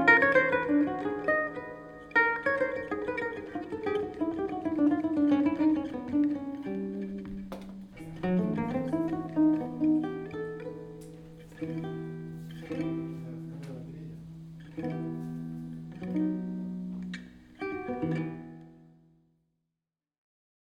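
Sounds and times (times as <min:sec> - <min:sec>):
requinto jaro guitar playing: 0:00.0 - 0:19.2.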